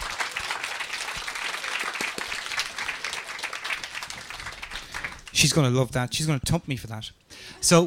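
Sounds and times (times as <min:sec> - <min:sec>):
audience applause: 0:00.0 - 0:05.4
speech: 0:05.4 - 0:07.8.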